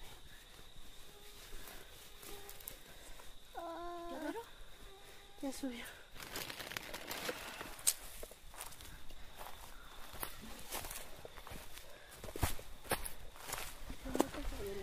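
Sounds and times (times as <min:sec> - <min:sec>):
footsteps crunching and shuffling on a rough, crinkly surface: 0:00.0 - 0:14.8
speech: 0:05.5 - 0:06.0.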